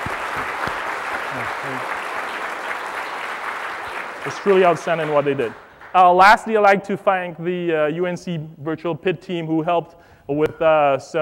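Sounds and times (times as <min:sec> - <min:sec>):
conference audience applause: 0:00.0 - 0:06.2
speech: 0:01.4 - 0:02.0, 0:04.2 - 0:11.1.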